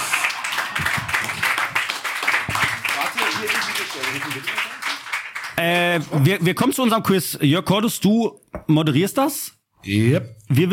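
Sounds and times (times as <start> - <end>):
audience applause: 0.0 - 6.3
speech: 4.0 - 4.7, 5.6 - 10.7.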